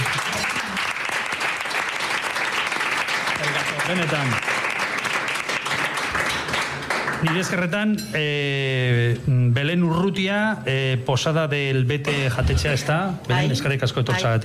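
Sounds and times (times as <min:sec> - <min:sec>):
audience applause: 0:00.0 - 0:07.5
speech: 0:03.9 - 0:04.4, 0:07.2 - 0:14.4.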